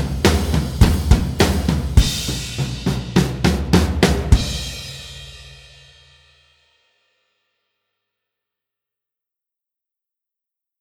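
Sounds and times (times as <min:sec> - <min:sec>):
arena rock music: 0:00.0 - 0:05.4.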